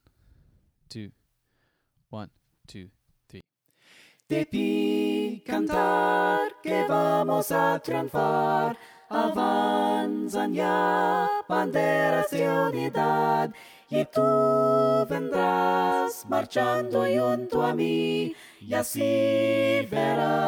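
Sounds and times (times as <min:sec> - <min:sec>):
soprano singing: 0:04.3 - 0:20.4.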